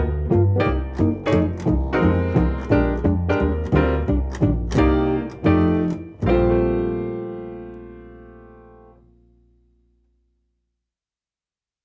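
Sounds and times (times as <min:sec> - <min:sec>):
instrumental music: 0:00.0 - 0:09.9.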